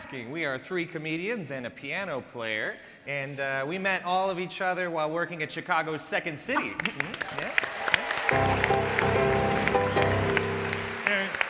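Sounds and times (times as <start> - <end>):
speech: 0.1 - 7.6
audience applause: 6.8 - 11.4.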